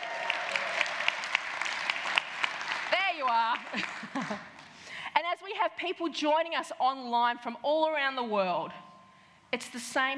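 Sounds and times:
audience applause: 0.0s - 4.7s
speech: 3.2s - 4.5s, 5.2s - 8.9s, 9.5s - 10.1s.

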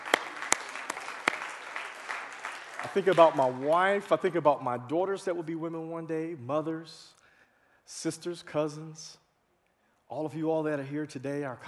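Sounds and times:
small audience clapping at an event honoring women: 0.0s - 4.4s
speech: 2.9s - 7.2s, 7.9s - 9.2s, 10.1s - 11.6s.

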